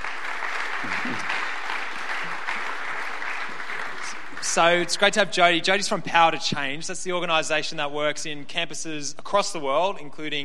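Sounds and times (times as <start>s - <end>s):
audience applause welcoming a guest: 0.0s - 5.2s
speech: 0.8s - 1.4s, 4.5s - 10.4s.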